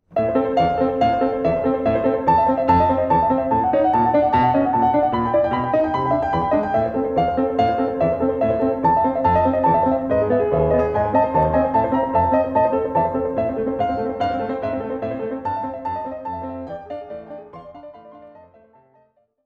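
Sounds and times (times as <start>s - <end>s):
piano sonata fourth movement: 0.0s - 19.3s.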